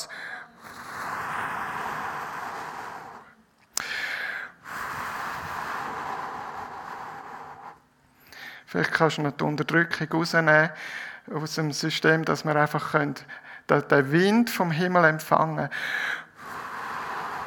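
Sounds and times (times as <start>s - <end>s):
breath blown straight into a microphone: 0.0s - 8.7s, 15.8s - 17.4s
speech: 8.7s - 16.2s.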